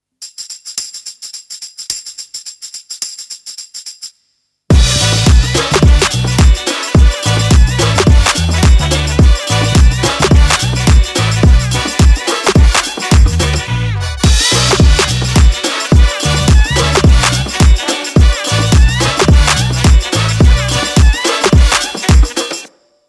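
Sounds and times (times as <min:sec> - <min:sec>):
funk music: 0:04.7 - 0:22.7.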